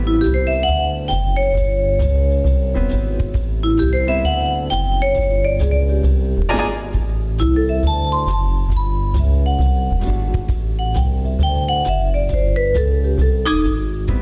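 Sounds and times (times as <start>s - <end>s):
fakir jazz music: 0.0s - 14.1s.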